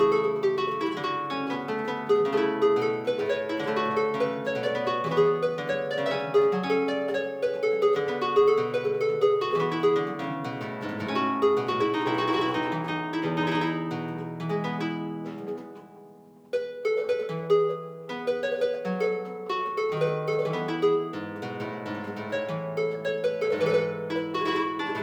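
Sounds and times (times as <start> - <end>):
harpsichord playing a courante in B flat: 0.0 - 25.0.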